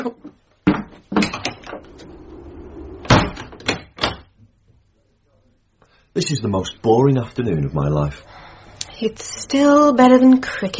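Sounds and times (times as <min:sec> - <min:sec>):
door being shut and locked: 0:03.0 - 0:04.3
speech: 0:06.2 - 0:08.4, 0:09.0 - 0:10.7.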